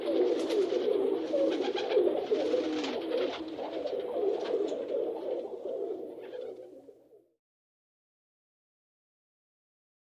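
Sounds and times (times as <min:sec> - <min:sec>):
pigeons cooing in a dovecote: 0:00.0 - 0:07.2.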